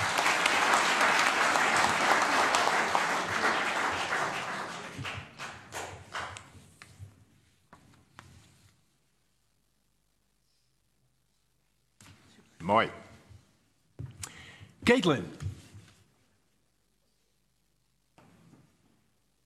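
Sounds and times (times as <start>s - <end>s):
thunderous applause from audience: 0.0s - 6.3s
speech: 12.7s - 13.0s, 14.9s - 15.5s.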